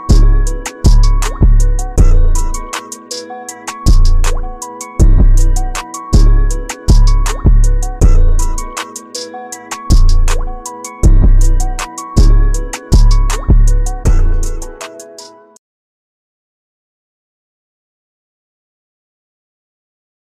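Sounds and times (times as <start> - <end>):
instrumental music: 0.0 - 15.6.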